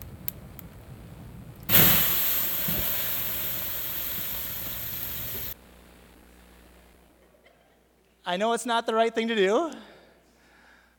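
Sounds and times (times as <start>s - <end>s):
water sizzling on a cooking fire: 1.7s - 5.6s
speech: 8.3s - 9.9s.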